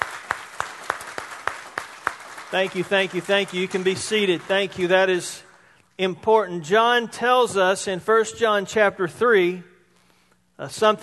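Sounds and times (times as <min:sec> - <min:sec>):
audience applause: 0:00.0 - 0:05.0
speech: 0:02.5 - 0:09.7, 0:10.6 - 0:11.0.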